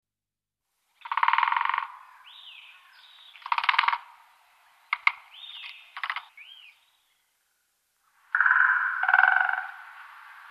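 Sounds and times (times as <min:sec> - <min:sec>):
great spotted woodpecker calling: 0:01.0 - 0:04.2, 0:04.8 - 0:07.0, 0:08.3 - 0:10.0.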